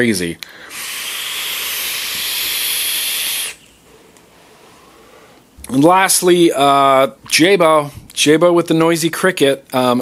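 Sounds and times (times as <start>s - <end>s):
speech: 0.0s - 1.0s, 5.7s - 9.9s
vape exhale hiss: 0.4s - 5.5s.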